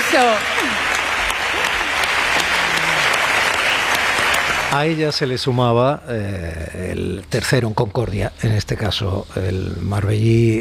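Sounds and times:
audience applause: 0.0 - 5.0
speech: 0.1 - 0.9, 4.7 - 10.5.

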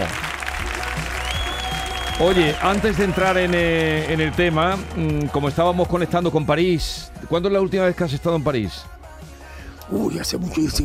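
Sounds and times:
studio applause: 0.0 - 6.4
speech: 2.2 - 8.9, 9.9 - 10.8.

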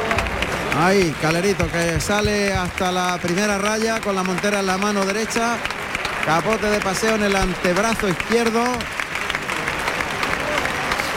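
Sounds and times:
bullring crowd ovation applause: 0.0 - 11.1
speech: 0.8 - 9.0.

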